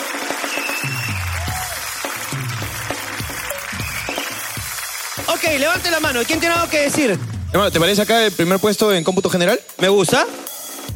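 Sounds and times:
audience applause: 0.0 - 8.0
speech: 5.3 - 10.5.

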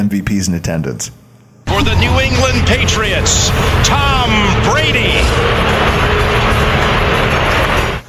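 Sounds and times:
speech: 0.0 - 6.3
stadium crowd booing: 1.7 - 8.0.

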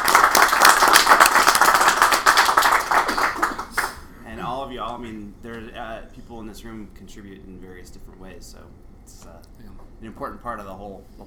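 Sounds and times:
audience applause: 0.0 - 4.1
speech: 5.0 - 11.2.

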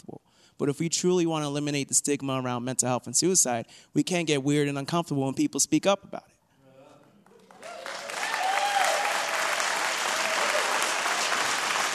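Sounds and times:
speech: 0.6 - 6.4
audience applause: 7.2 - 11.9.

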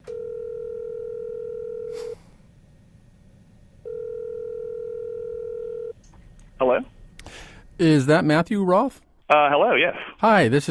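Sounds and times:
telephone dial tone: 0.0 - 1.9, 3.9 - 5.9
speech: 7.8 - 10.6.

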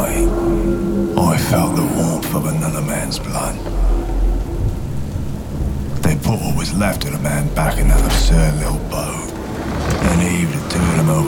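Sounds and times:
deep heavy rumbles of thunder: 0.0 - 11.2
steady rain: 0.0 - 11.2
speech: 1.4 - 3.9, 6.1 - 9.2, 9.9 - 11.2.

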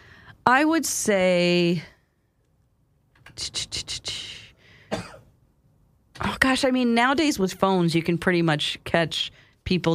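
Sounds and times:
speech: 0.5 - 1.9, 3.4 - 5.1, 6.2 - 9.9
person coughing from allergies: 4.8 - 5.3.

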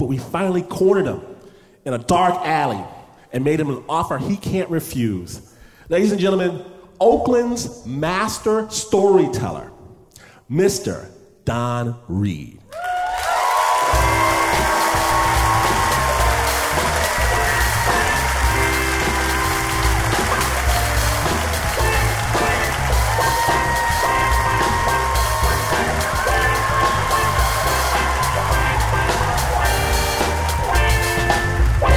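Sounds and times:
speech: 0.1 - 9.7, 10.5 - 12.9
audience clapping and cheering: 12.7 - 31.9
upbeat music with a thumping repeating bass pattern: 13.9 - 31.9.

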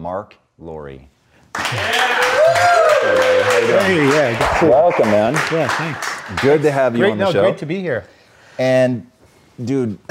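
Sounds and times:
speech: 0.0 - 10.0
audience applause welcoming a guest onto a stage show: 1.5 - 7.4.

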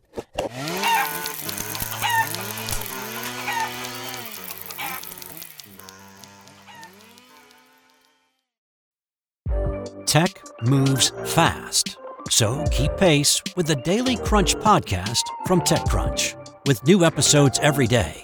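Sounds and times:
chicken clucking and squawking inside a box: 1.9 - 2.4, 3.4 - 3.8, 5.8 - 7.1
speech: 10.1 - 18.2.

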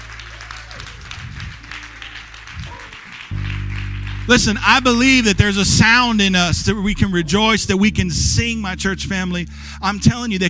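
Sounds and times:
round of applause: 0.0 - 6.2
speech: 4.3 - 10.4.

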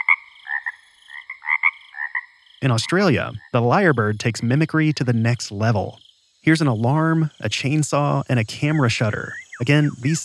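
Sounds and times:
mockingbird mimicking a frog croak: 0.0 - 4.6, 8.4 - 10.2
speech: 2.6 - 10.2.

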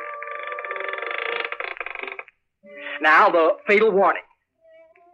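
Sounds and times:
creaking door sound effect: 0.0 - 2.3
speech: 2.8 - 4.3.

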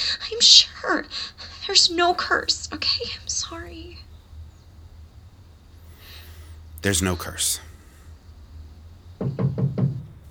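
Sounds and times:
speech: 0.2 - 4.0, 6.8 - 7.7
knocking on a wooden door: 9.2 - 10.2.

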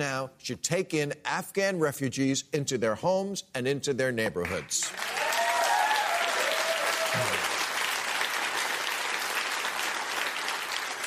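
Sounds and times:
speech: 0.0 - 5.2
audience clapping: 4.4 - 11.0.

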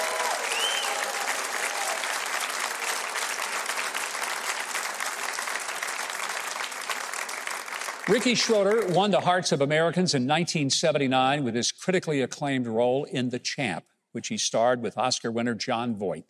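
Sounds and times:
audience applause for a band: 0.0 - 9.2
speech: 8.1 - 16.2.

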